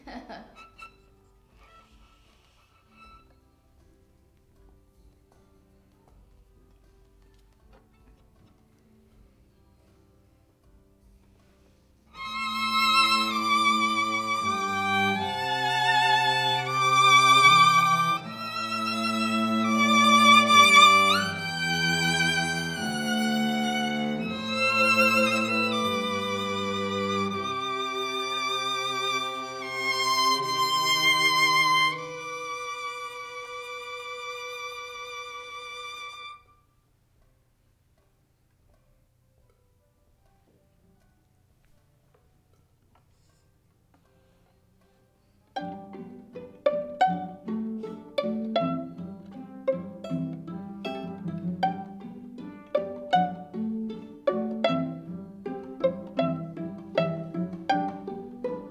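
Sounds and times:
violin: 0.0s - 4.0s, 11.3s - 36.7s, 45.5s - 58.6s.

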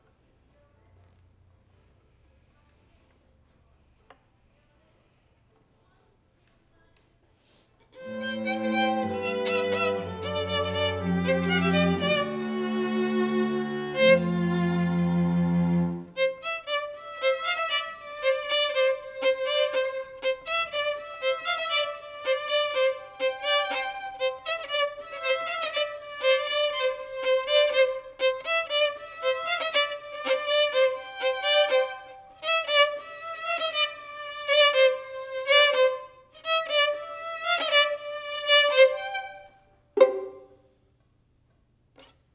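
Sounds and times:
violin: 8.0s - 40.6s.

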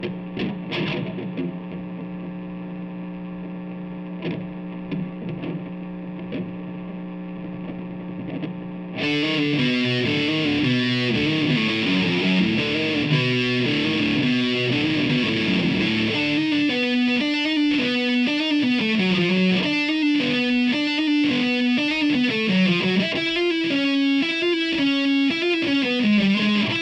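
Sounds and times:
guitar: 0.0s - 26.7s.

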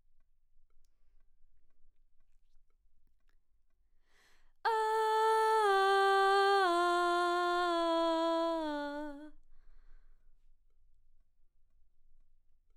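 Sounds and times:
background vocals: 4.7s - 9.3s.

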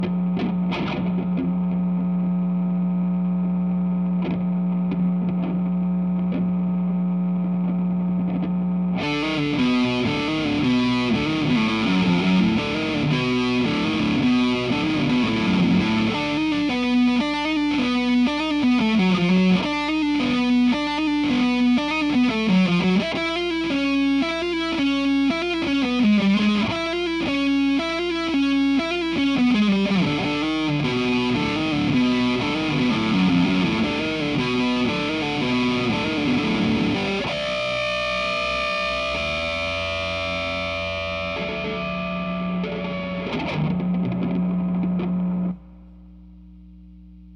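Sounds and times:
guitar: 0.0s - 47.3s.

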